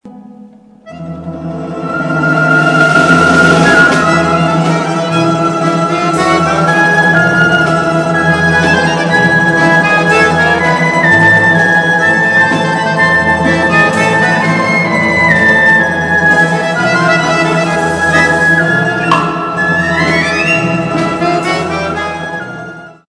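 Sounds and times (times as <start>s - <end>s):
Jewish folk music: 0.0s - 23.0s.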